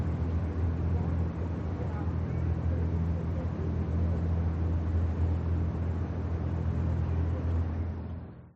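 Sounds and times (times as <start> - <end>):
harbour ambience in Germany: 0.0 - 8.5.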